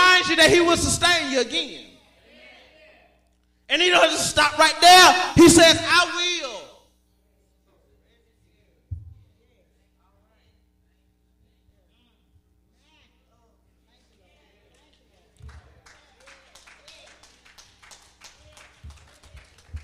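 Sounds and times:
speech: 0.2 - 1.9, 3.7 - 6.6
a few people clapping: 14.0 - 19.8.

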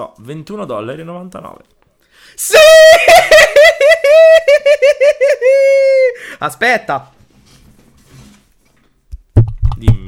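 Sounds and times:
speech: 0.0 - 7.2
laughter: 2.7 - 6.2
faint rustling: 7.1 - 9.2.

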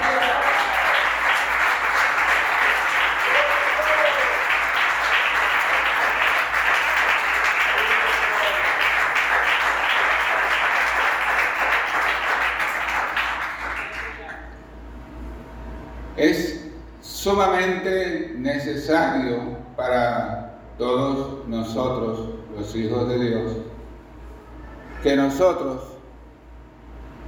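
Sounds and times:
audience applause: 0.0 - 14.5
speech: 17.3 - 20.3, 21.7 - 23.6, 25.0 - 25.9.

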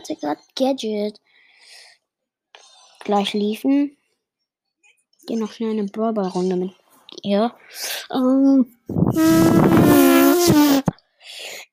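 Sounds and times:
speech: 0.1 - 1.3, 3.0 - 4.0, 5.3 - 11.6
hand pressed against skin making a fart-like noise: 8.9 - 11.0.

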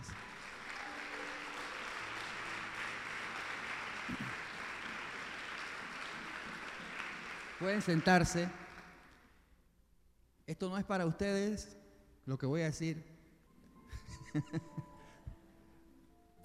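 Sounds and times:
audience applause: 0.0 - 9.2
speech: 7.6 - 8.6, 10.6 - 13.1, 14.3 - 14.9
laughter: 13.9 - 14.9.

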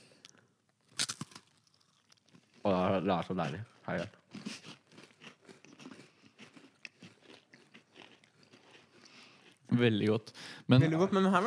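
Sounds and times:
biting into and chewing a crunchy store-bought gingerbread cookie: 0.8 - 9.7
speech: 2.6 - 4.2, 9.8 - 11.4.

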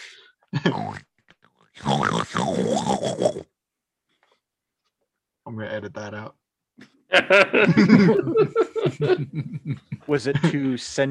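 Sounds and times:
person voicing a talking pig: 0.7 - 1.1, 1.8 - 3.5
speech: 5.6 - 11.0
laughter: 7.1 - 10.8.

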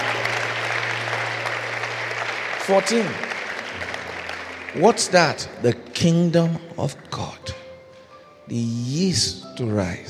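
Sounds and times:
audience clapping: 0.0 - 7.3
speech: 2.7 - 3.3, 4.7 - 7.6, 8.5 - 10.0.

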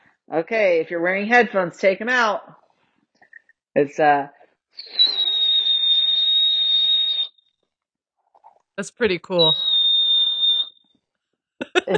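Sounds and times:
speech: 0.3 - 2.6, 3.8 - 5.1, 8.8 - 9.7, 11.7 - 11.9
person whistling: 4.8 - 7.3.

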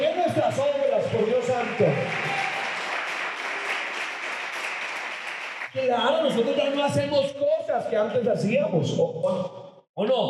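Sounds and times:
audience applause: 0.0 - 7.0
speech: 1.1 - 2.3, 6.0 - 10.2.

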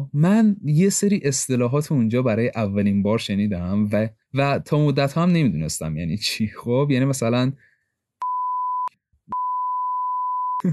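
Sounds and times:
speech: 0.1 - 7.7
censor beep: 8.2 - 10.7.

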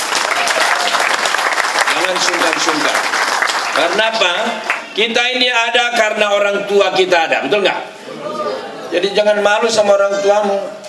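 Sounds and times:
audience applause: 0.0 - 5.0
speech: 2.1 - 3.2, 3.8 - 7.9, 8.9 - 10.8.

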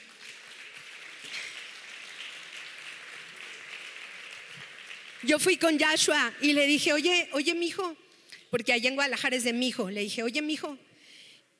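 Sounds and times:
audience applause: 0.0 - 5.5
speech: 5.2 - 10.9.

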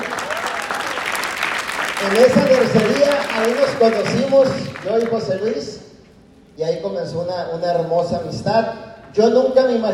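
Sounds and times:
audience applause: 0.0 - 5.1
speech: 2.0 - 5.9, 6.6 - 9.9.

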